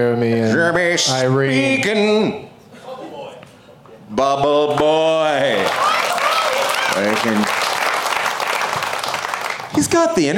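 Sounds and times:
speech: 0.0s - 2.5s, 4.1s - 5.8s, 7.0s - 7.5s, 9.8s - 10.3s
audience applause: 5.5s - 9.8s.

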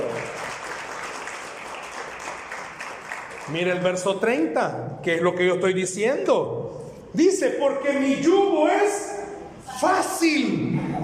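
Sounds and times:
audience applause: 0.0s - 3.8s
speech: 3.5s - 9.1s, 9.8s - 11.0s.

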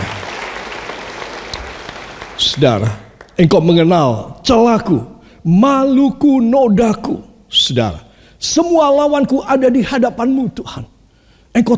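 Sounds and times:
audience applause: 0.0s - 3.4s
speech: 2.4s - 10.9s, 11.5s - 11.7s.

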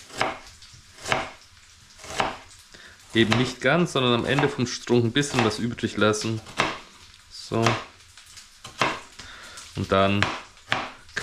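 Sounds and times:
knife slicing a peeled, halved onion against the board: 0.0s - 1.4s, 2.0s - 2.5s, 3.2s - 6.9s, 8.7s - 9.1s, 10.1s - 11.2s
speech: 3.1s - 6.6s, 7.5s - 7.9s, 9.8s - 10.4s.

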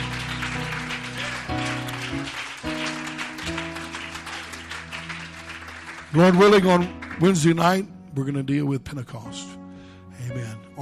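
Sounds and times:
audience clapping: 0.0s - 7.9s
sustained organ chords: 0.0s - 10.8s
speech: 6.2s - 9.5s, 10.3s - 10.8s.

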